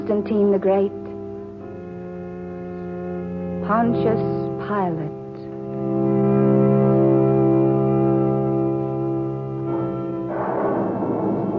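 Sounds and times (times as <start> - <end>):
speech: 0.1 - 1.0, 3.7 - 5.2
deep tonal drone: 5.7 - 11.5
thunderstorm rumbling: 10.3 - 11.5.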